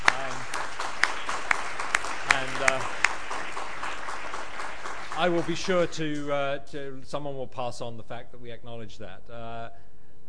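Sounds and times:
audience applause: 0.0s - 6.4s
speech: 5.2s - 9.9s.

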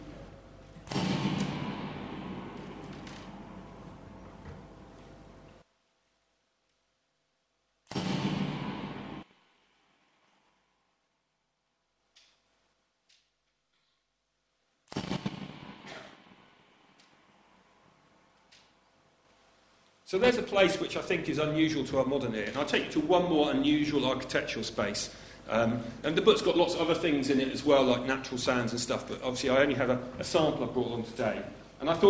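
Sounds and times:
balloon bursts echoing around a dome: 0.8s - 4.4s, 7.9s - 9.4s, 14.9s - 17.0s
speech: 20.1s - 32.0s.

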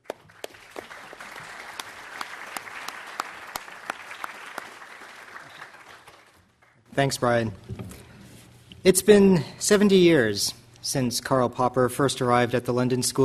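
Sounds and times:
audience applause welcoming a speaker at a memorial lecture: 0.0s - 6.8s
speech: 7.0s - 8.0s, 8.8s - 13.2s.

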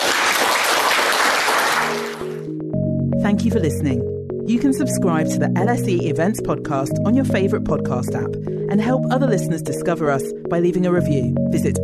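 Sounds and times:
audience applause: 0.0s - 2.4s
speech: 3.2s - 11.8s.

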